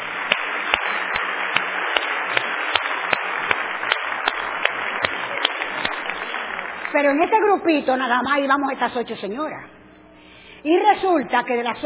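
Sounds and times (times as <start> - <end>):
audience applause: 0.0 - 7.5
speech: 7.0 - 9.7, 10.6 - 11.8.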